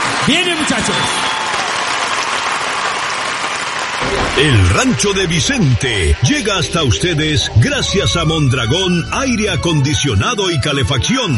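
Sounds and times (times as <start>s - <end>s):
audience applause at a live music show: 0.0s - 9.1s
speech: 0.2s - 1.4s, 4.0s - 11.3s.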